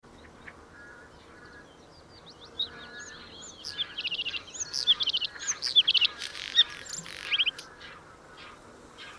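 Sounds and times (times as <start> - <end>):
Bluethroat song at Schurrsee: 0.1 - 7.9.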